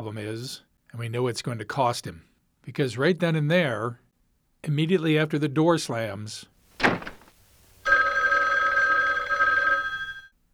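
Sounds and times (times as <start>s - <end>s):
speech: 0.0s - 4.0s, 4.6s - 6.5s
telephone ringing: 7.8s - 10.3s.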